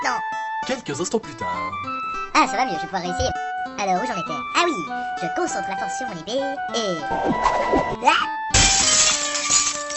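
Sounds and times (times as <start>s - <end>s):
speech: 0.7s - 8.4s
window pane shattering: 8.5s - 9.9s.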